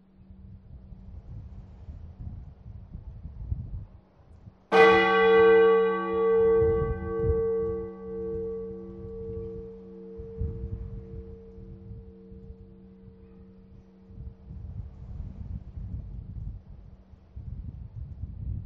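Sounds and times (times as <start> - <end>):
bell: 4.7 - 14.3.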